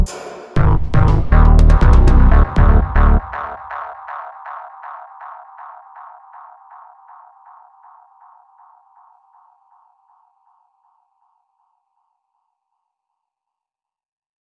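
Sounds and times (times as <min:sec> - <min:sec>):
game music loop stem: 0:00.1 - 0:07.8.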